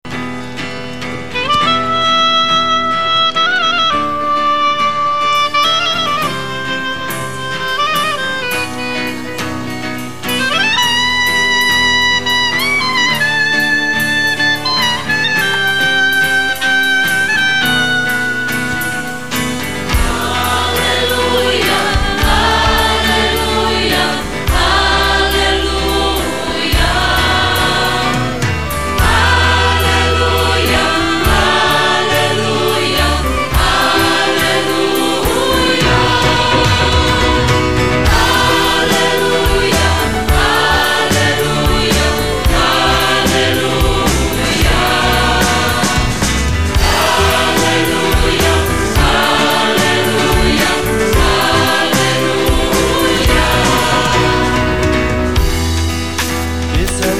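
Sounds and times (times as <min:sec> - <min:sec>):
Arabic hallelujah song: 0:01.2 - 0:57.1.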